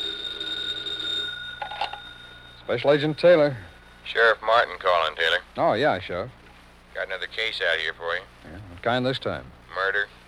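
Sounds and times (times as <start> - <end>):
telephone ringing: 0.0 - 4.6
speech: 2.7 - 6.4, 7.0 - 10.2.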